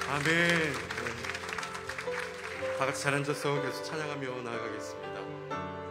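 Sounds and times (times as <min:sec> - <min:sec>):
audience applause: 0:00.0 - 0:03.9
speech: 0:00.1 - 0:01.3, 0:02.0 - 0:05.8.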